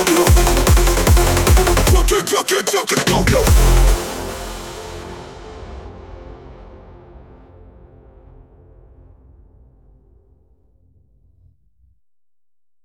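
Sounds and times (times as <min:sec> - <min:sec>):
brostep K-pop fusion music: 0:00.0 - 0:06.1.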